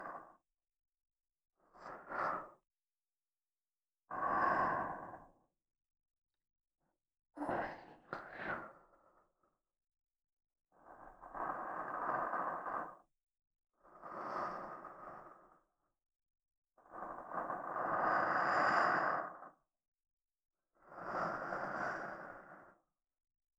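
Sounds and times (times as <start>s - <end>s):
soft sleep-inducing voice in right channel: 0.0s - 0.4s, 1.6s - 2.6s, 4.1s - 5.4s, 7.4s - 9.2s, 10.8s - 13.1s, 13.9s - 15.7s, 16.8s - 19.6s, 20.8s - 22.9s.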